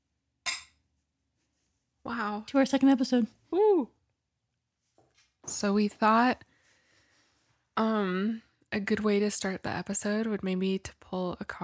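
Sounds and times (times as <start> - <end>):
glasses clinking in a toast: 0.5 - 0.8
speech: 2.1 - 4.0, 5.5 - 6.5, 7.8 - 11.6.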